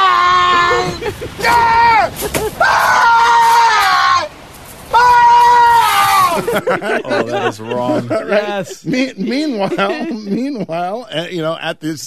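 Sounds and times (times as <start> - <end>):
laughter: 0.0 - 2.9, 6.0 - 11.6
man screaming: 0.0 - 6.5
speech: 1.1 - 2.8, 6.6 - 12.0.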